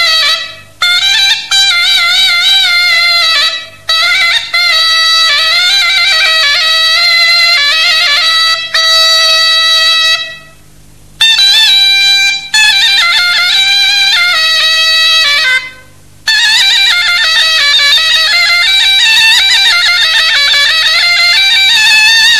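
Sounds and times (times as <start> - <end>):
zurna playing: 0.0 - 22.3.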